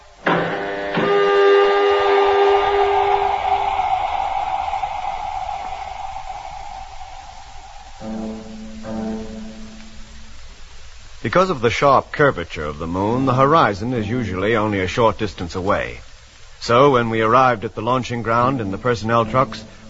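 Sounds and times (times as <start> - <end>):
spacecraft airlock on a moon colony opening with a hiss: 0.0 - 19.8
low droning horn-like tones: 1.0 - 10.6
low steady hum: 1.8 - 19.8
speech: 11.3 - 19.8.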